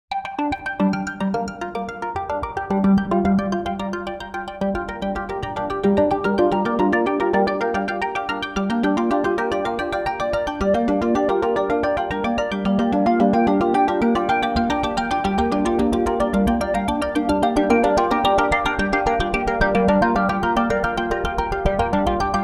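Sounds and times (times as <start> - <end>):
synth arpeggio: 0.3 - 22.4.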